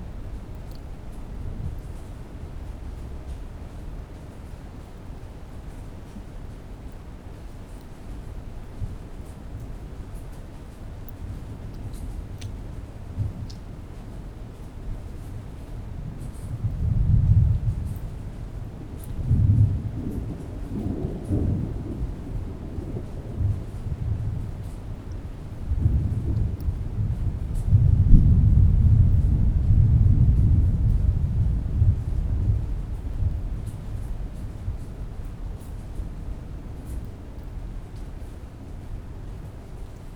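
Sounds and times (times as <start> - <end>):
thunder: 16.1 - 36.0.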